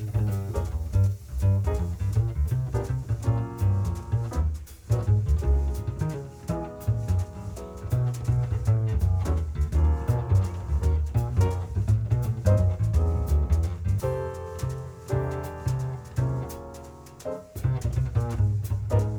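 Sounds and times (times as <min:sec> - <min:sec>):
medium-tempo waltz: 0:00.1 - 0:19.1.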